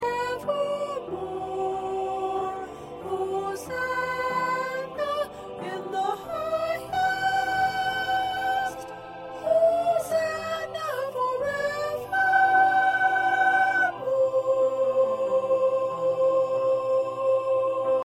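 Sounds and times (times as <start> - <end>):
first soprano singing: 0.0 - 18.0.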